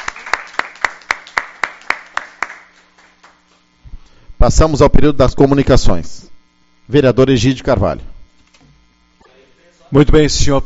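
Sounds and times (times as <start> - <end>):
applause for council staff: 0.0 - 3.4
speech: 4.4 - 6.2, 6.9 - 8.1, 9.9 - 10.6.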